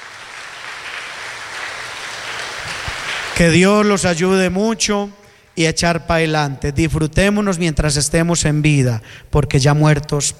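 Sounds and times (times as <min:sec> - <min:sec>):
applause for birthday celebrants: 0:00.0 - 0:04.0
speech: 0:03.4 - 0:10.3.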